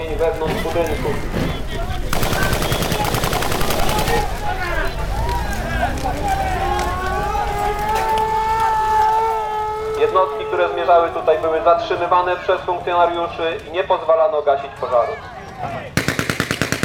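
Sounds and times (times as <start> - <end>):
voices calling and wailing: 0.0 - 16.0
speech: 0.2 - 1.4, 10.6 - 15.4
automatic gunfire: 2.1 - 4.5, 16.0 - 16.8.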